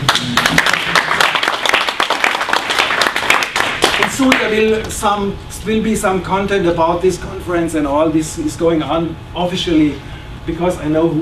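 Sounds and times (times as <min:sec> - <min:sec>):
audience applause: 0:00.0 - 0:04.4
speech: 0:04.2 - 0:11.2.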